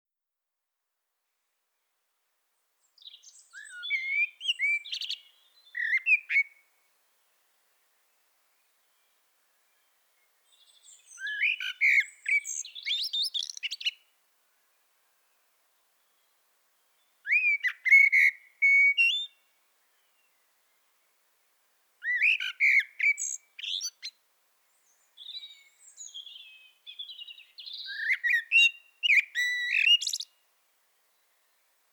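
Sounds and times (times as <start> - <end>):
common blackbird singing: 2.9 - 6.6, 9.8 - 14.0, 17.0 - 20.4, 22.0 - 24.2, 24.8 - 30.4.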